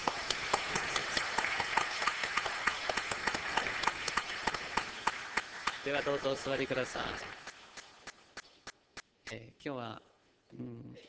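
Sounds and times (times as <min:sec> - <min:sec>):
group of people applauding: 0:00.0 - 0:08.7
speech: 0:05.8 - 0:07.4, 0:09.3 - 0:11.0.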